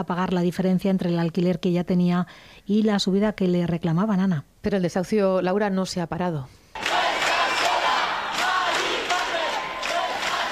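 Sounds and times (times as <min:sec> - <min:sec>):
speech: 0:00.0 - 0:06.6
crowd shouting in support at eviction: 0:06.8 - 0:10.4.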